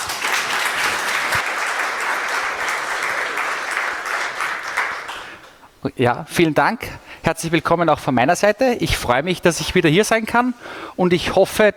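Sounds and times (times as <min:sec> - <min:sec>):
steady audience applause: 0:00.0 - 0:05.6
speech: 0:05.8 - 0:11.7.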